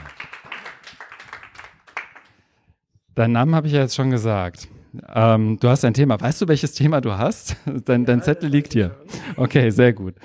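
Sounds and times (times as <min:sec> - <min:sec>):
audience applause: 0:00.0 - 0:02.3
speech: 0:03.2 - 0:10.2.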